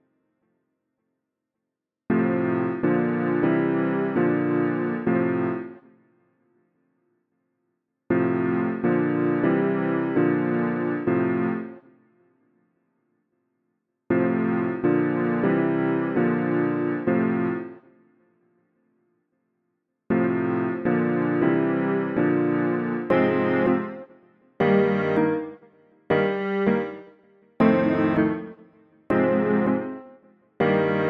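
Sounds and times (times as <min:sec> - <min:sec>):
piano: 0:02.1 - 0:05.9, 0:08.1 - 0:11.9, 0:14.1 - 0:17.8, 0:20.1 - 0:31.0.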